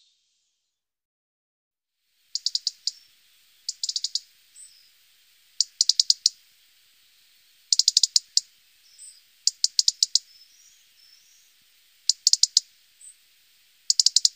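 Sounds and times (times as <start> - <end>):
European robin Erithacus rubecula sharp ticks: 2.3 - 6.5, 7.5 - 14.3.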